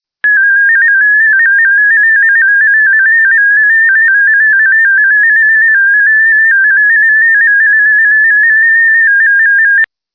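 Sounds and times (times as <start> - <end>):
DominoEx-16 digital mode radio signal: 0.3 - 9.9.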